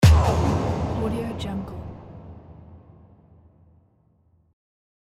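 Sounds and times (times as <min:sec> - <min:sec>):
big impact hits: 0:00.0 - 0:03.1.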